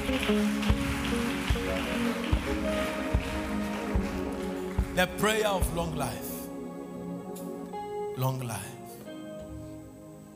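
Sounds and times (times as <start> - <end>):
audience clapping: 0.0 - 6.5
speech: 0.3 - 0.7, 5.0 - 6.3, 8.2 - 8.7.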